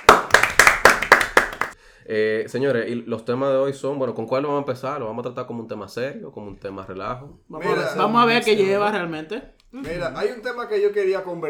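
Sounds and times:
hands clapping: 0.0 - 1.8
speech: 2.1 - 11.4.

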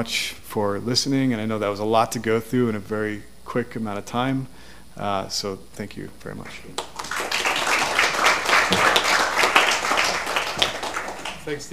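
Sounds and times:
speech: 0.0 - 6.9, 11.4 - 11.7
audience applause: 6.8 - 11.6.

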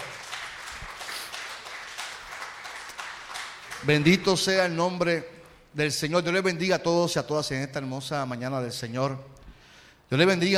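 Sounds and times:
audience applauding: 0.0 - 4.5
speech: 3.8 - 9.4, 10.1 - 10.5.

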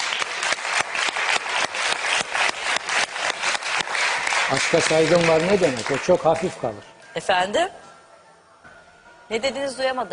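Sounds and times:
crowd applause: 0.0 - 6.8
speech: 4.5 - 7.8, 9.3 - 10.1.

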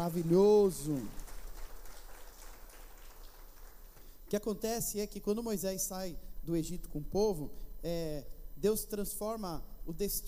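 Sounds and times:
speech: 0.0 - 1.2, 4.3 - 10.2
audience applause: 0.0 - 4.0.

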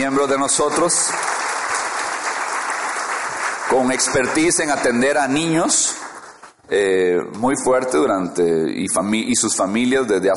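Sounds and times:
speech: 0.0 - 1.4, 3.7 - 6.1, 6.7 - 10.3
audience applause: 0.0 - 6.6.

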